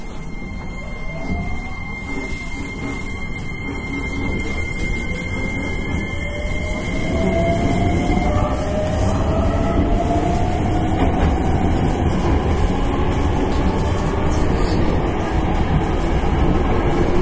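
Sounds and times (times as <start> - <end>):
Hankyu 9300 series train wheel and motor squeal: 0.0 - 9.3
Hankyu 9300 series train running: 0.0 - 17.2.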